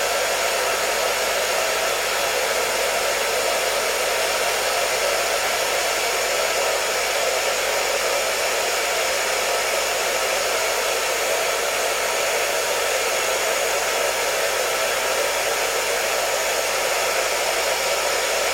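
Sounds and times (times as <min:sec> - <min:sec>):
hair dryer blowing: 0:00.0 - 0:18.5.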